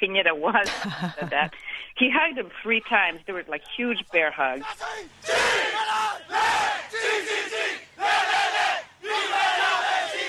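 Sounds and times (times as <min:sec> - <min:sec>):
speech: 0:00.1 - 0:06.0
laughter: 0:00.6 - 0:01.9
crowd of rescue workers cheering in chants: 0:04.6 - 0:10.2.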